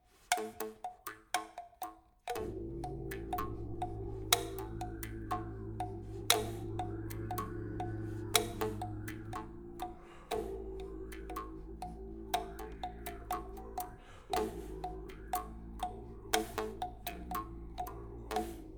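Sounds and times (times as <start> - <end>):
jaw harp: 2.3 - 18.7
sanza thumb piano: 2.3 - 18.7
voice: 2.3 - 18.7.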